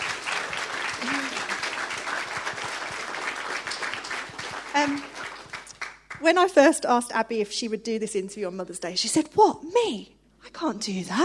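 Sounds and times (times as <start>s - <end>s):
audience applause: 0.0s - 6.2s
speech: 4.8s - 5.2s, 6.2s - 11.2s.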